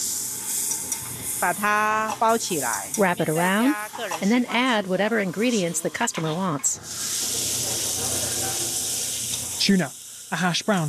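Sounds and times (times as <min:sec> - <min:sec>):
egg and wheat flour dough sizzling on a griddle for Taiwanese danbing: 0:00.0 - 0:04.1, 0:06.8 - 0:10.8
speech: 0:01.4 - 0:07.2, 0:09.6 - 0:10.8.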